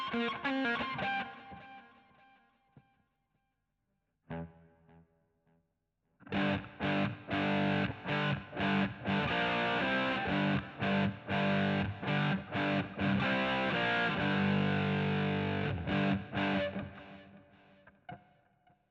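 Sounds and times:
guitar: 0.0s - 2.4s, 6.2s - 18.7s.

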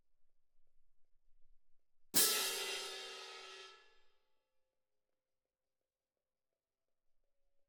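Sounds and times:
cymbal: 2.2s - 4.0s.

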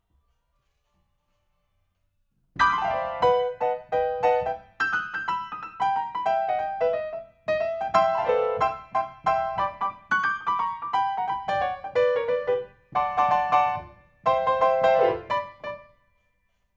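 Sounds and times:
rock and roll piano: 2.6s - 16.0s.

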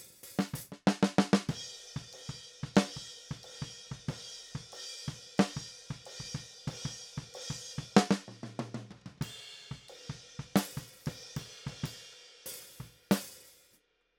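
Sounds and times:
snare drum: 0.0s - 1.6s, 8.0s - 9.2s, 10.4s - 11.8s, 12.6s - 13.6s.

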